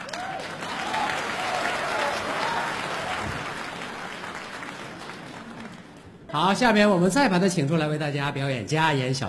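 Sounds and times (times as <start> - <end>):
audience applause: 0.0 - 6.2
speech: 6.3 - 9.2.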